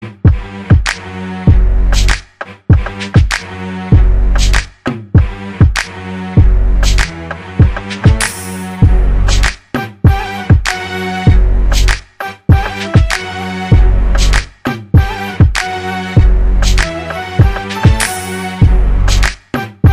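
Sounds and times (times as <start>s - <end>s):
instrumental music: 0.0s - 19.9s.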